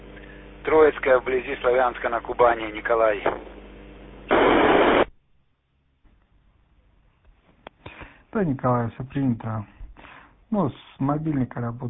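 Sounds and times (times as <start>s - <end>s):
radio on-air static noise: 0.6s - 5.1s
speech: 0.7s - 3.5s, 8.4s - 9.8s, 10.5s - 11.8s.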